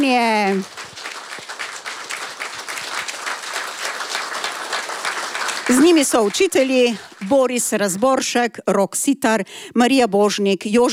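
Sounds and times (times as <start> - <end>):
speech: 0.0 - 0.8, 5.7 - 10.9
audience applause: 0.0 - 7.9.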